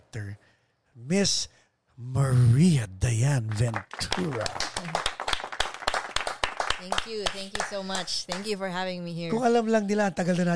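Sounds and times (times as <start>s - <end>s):
speech: 0.1s - 5.1s, 6.8s - 10.5s
audience applause: 3.4s - 8.5s.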